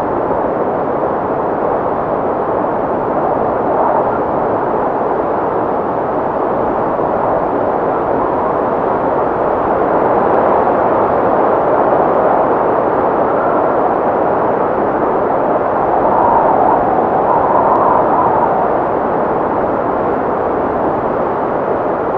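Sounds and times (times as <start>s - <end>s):
storm wind: 0.0s - 22.1s.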